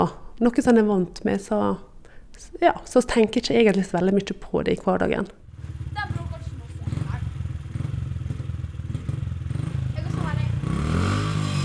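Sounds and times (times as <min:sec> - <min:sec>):
speech: 0:00.0 - 0:05.4
small motorcycles revving in a barn: 0:05.5 - 0:11.6.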